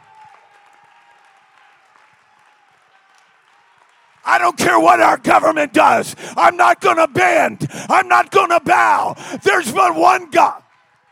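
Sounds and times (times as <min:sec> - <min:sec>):
audience clapping: 0:00.0 - 0:04.6
speech: 0:04.2 - 0:10.6.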